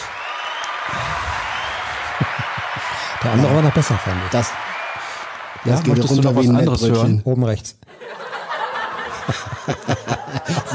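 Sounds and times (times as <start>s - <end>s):
applause sound effect from a mixer button: 0.0s - 6.6s
laughter: 1.8s - 3.2s, 7.9s - 10.7s
speech: 3.2s - 4.8s, 5.6s - 7.8s, 9.3s - 10.7s.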